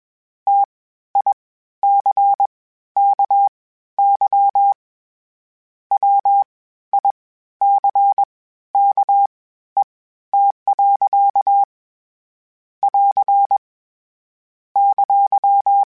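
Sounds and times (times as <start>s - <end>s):
Morse code beeps: 0.5s - 4.8s, 6.0s - 9.3s, 10.4s - 11.7s, 12.9s - 13.6s, 14.8s - 15.9s.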